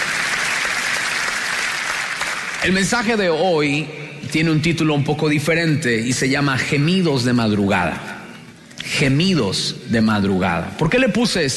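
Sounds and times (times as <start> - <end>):
church congregation applauding: 0.0 - 3.2
speech: 2.6 - 8.2, 9.0 - 11.5.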